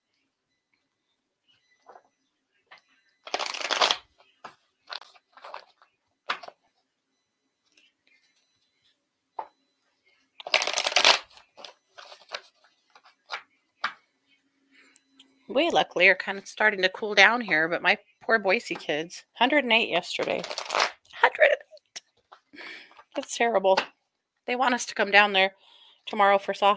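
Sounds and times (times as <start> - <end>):
tarot cards riffle shuffled for a card reading: 3.3 - 4.0, 10.4 - 13.4, 20.4 - 20.9
speech: 15.6 - 20.7, 23.4 - 23.9, 24.5 - 26.7.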